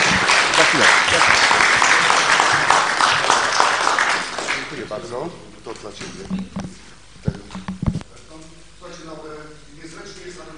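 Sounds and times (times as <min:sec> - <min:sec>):
audience applause at a civic gathering about city development: 0:00.0 - 0:05.0
speech: 0:05.8 - 0:06.8.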